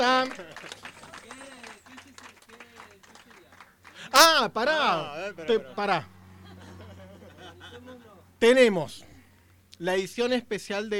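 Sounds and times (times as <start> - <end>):
speech: 0.0 - 0.8, 4.2 - 6.1, 8.4 - 9.1, 9.8 - 10.9
crowd applauding: 0.0 - 4.4
laughter: 0.0 - 8.2.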